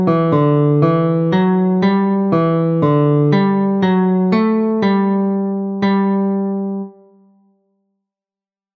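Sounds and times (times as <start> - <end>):
guitar folk tune on several strings: 0.0 - 7.2.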